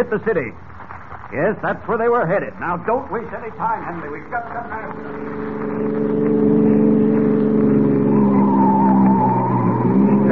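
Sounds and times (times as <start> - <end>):
speech: 0.0 - 0.7, 1.3 - 6.1
car speeding with engine roaring: 3.8 - 10.3
car tires squealing: 4.1 - 10.3.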